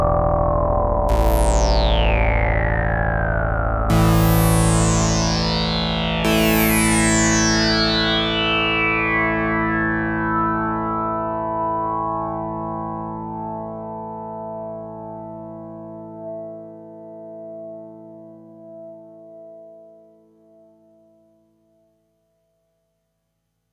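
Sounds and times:
JP8 fat filter sweep synth pad: 0.0 - 17.8.

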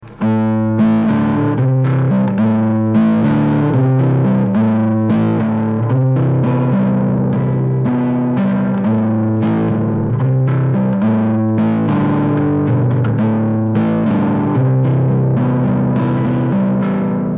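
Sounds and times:
tensioned guitar with Zoom overdrive: 0.0 - 17.3.

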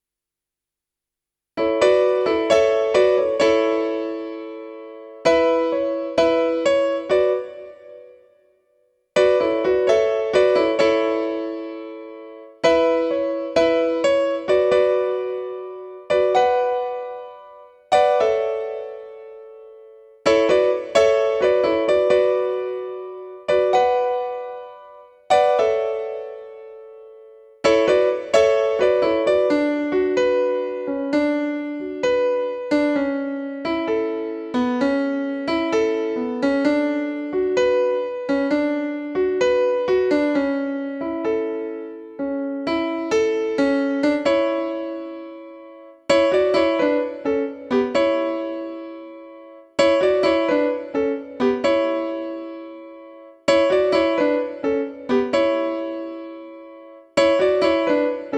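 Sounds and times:
Juno-DS88 concert grand piano: 1.6 - 58.3.

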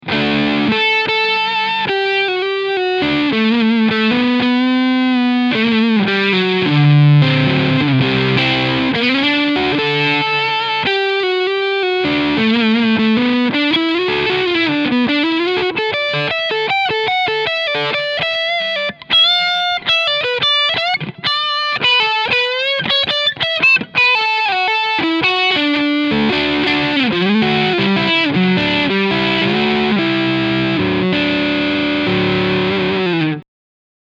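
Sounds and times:
Asat Special with both pickups and overdrive: 0.0 - 33.4.

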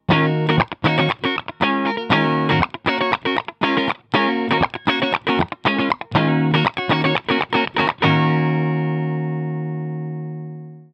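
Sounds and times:
Telecaster electric guitar on neck pickup: 0.0 - 10.8.

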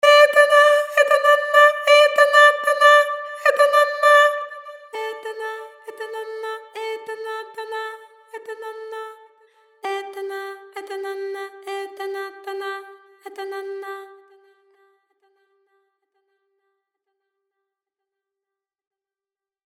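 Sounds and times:
rhythmic vocalise: 0.0 - 9.2, 9.8 - 14.3.

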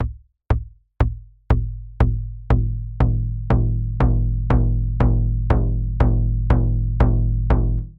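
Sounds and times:
barrel bass drum hit: 1.5 - 7.9.

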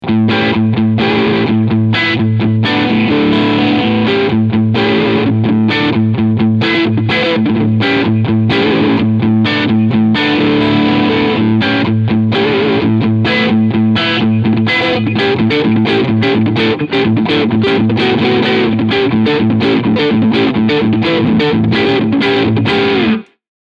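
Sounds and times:
crunch guitar tone with both pickups: 0.0 - 23.4.

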